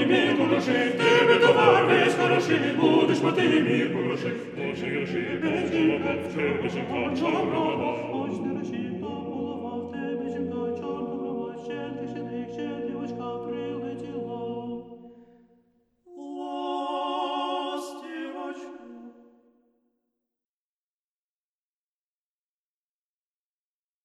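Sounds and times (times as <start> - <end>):
Ukrainian folk song: 0.0 - 15.0, 16.1 - 19.4.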